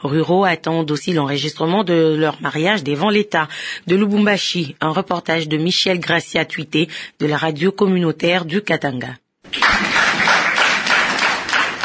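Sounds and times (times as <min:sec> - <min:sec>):
speech: 0:00.0 - 0:09.9
crowd in Lubumbashi clapping for rural couples registering marriages: 0:09.5 - 0:11.8.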